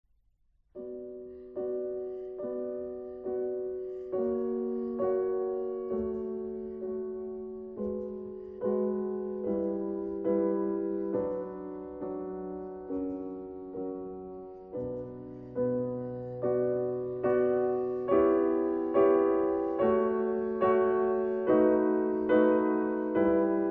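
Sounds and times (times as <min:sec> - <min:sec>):
adagio for piano in D major: 0:00.8 - 0:23.6.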